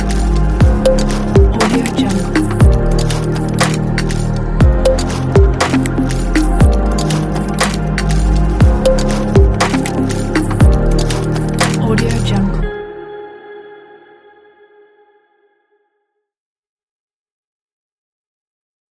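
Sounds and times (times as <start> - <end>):
abstract ambient background atmosphere: 0.0 - 13.4.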